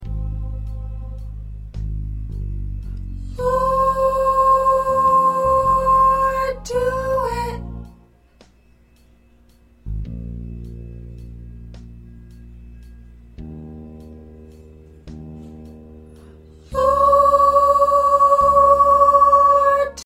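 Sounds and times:
soprano singing: 0:03.2 - 0:08.1, 0:16.6 - 0:20.0.

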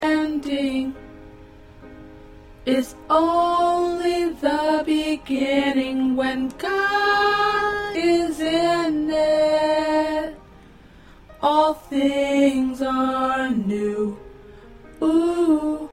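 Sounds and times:
alto choir singing: 0:00.0 - 0:01.0, 0:02.7 - 0:10.4, 0:11.4 - 0:14.3.

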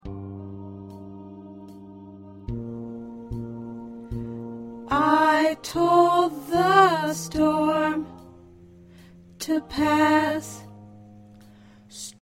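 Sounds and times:
alto choir singing: 0:00.0 - 0:08.4, 0:09.4 - 0:10.7.

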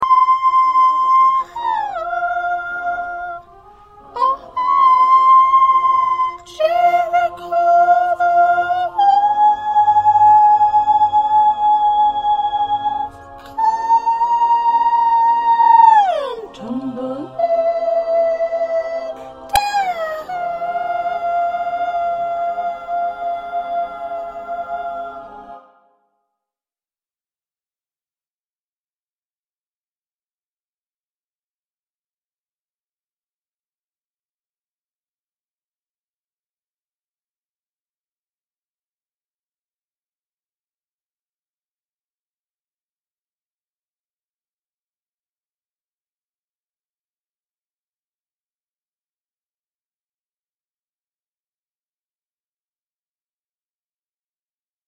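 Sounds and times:
soprano singing: 0:00.0 - 0:25.8.

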